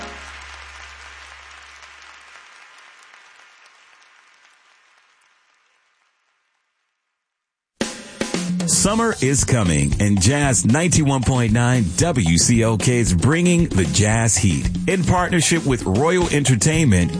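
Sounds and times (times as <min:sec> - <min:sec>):
audience applause: 0:00.0 - 0:06.8
speech: 0:08.7 - 0:17.1.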